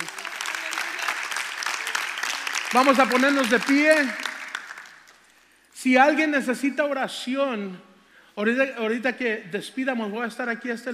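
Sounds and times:
applause: 0.0s - 5.6s
speech: 2.7s - 4.2s, 5.8s - 10.9s.

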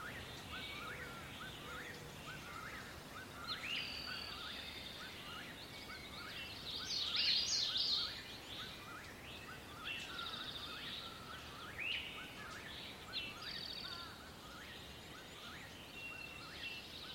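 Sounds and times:
many birds chirping in a forest: 0.0s - 17.1s
soft steady hiss: 0.0s - 17.1s.

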